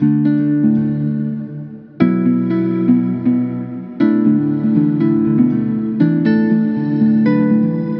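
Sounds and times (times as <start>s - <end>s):
120 BPM music loop in F minor: 0.0s - 7.9s.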